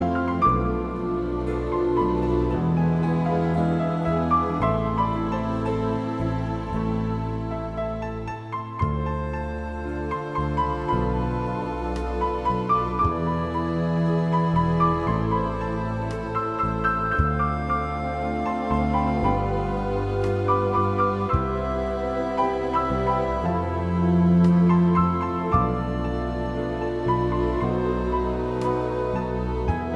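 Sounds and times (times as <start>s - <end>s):
piano piece: 0.0s - 29.9s.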